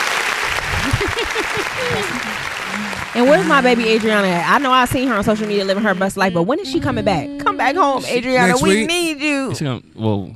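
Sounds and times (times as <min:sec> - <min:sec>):
audience applause: 0:00.0 - 0:06.3
laughter: 0:00.6 - 0:07.1, 0:08.2 - 0:09.0
speech: 0:01.1 - 0:10.3.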